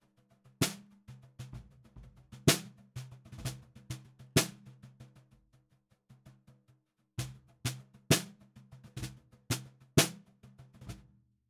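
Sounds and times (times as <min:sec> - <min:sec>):
snare drum recorded from the bottom: 0:00.6 - 0:04.7, 0:07.2 - 0:10.2.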